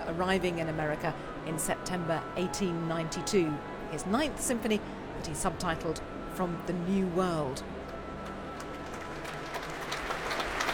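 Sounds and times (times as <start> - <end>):
speech: 0.2 - 7.8
concert audience applause for an orchestra leader: 8.5 - 10.7.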